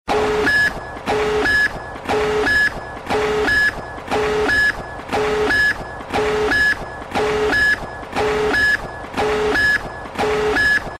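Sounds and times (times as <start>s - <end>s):
nuke countdown: 0.1s - 10.9s.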